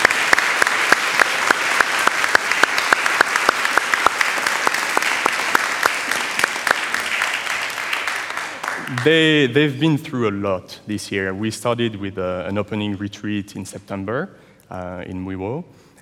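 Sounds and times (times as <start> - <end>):
audience applause: 0.0 - 9.5
speech: 9.0 - 15.8.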